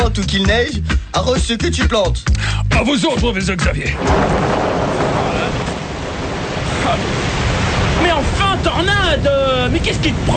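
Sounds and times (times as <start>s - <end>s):
speech: 0.1s - 5.0s, 6.9s - 7.4s, 8.0s - 10.3s
sudden heavy downpour of rain: 3.9s - 10.3s.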